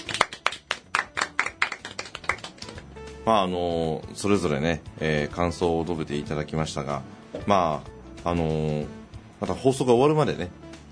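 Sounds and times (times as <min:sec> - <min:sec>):
audience clapping: 0:00.0 - 0:02.9
speech: 0:03.2 - 0:10.6.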